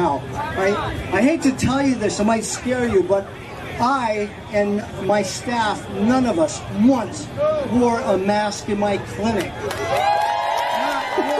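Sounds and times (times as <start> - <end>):
speech: 0.0 - 10.1
audience clapping and cheering: 9.6 - 11.3.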